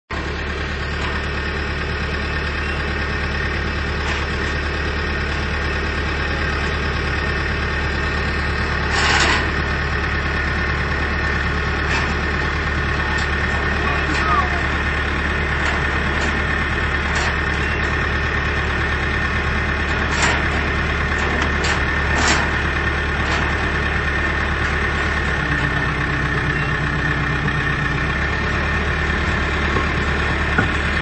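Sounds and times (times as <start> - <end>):
bulldozer at a construction site: 0.1 - 31.0.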